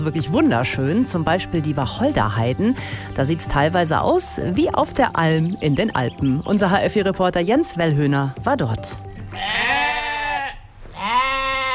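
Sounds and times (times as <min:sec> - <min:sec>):
speech: 0:00.0 - 0:09.8
sheep bleating: 0:09.3 - 0:11.7.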